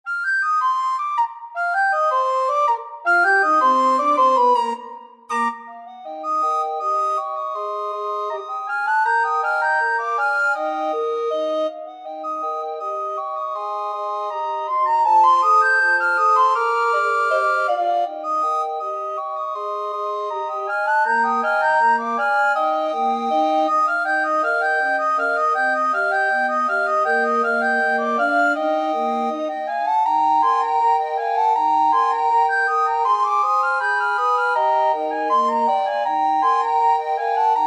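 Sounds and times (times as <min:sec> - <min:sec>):
recorder ensemble: 0:00.1 - 0:37.6.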